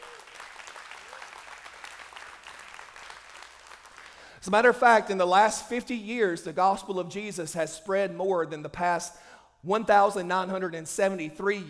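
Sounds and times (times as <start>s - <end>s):
audience hand clapping: 0.0s - 4.4s
speech: 4.4s - 11.6s.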